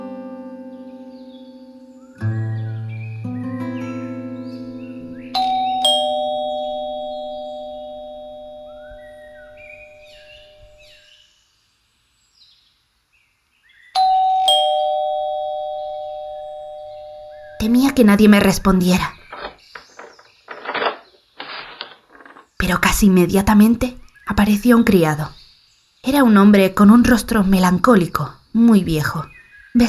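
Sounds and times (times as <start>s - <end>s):
doorbell at a light oak front door chiming ding-dong: 5.3s - 10.7s, 14.0s - 17.6s
speech: 18.0s - 19.2s, 22.7s - 25.4s, 26.0s - 29.8s.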